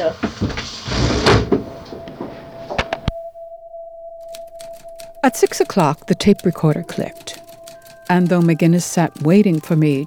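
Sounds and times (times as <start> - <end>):
window pushed open with a rough scraping rattling slide: 0.0 - 3.1
thin steady squeal: 0.0 - 10.0
speech: 5.4 - 7.3, 8.1 - 10.0.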